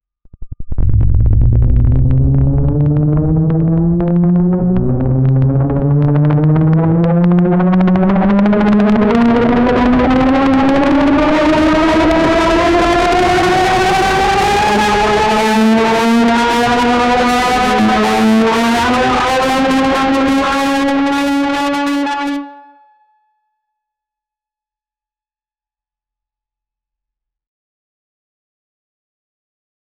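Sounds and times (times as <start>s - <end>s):
riser sound effects: 0.4s - 22.3s.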